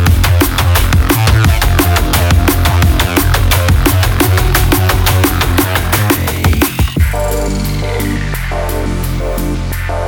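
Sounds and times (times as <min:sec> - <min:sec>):
downtempo chill synth music: 0:00.1 - 0:10.0.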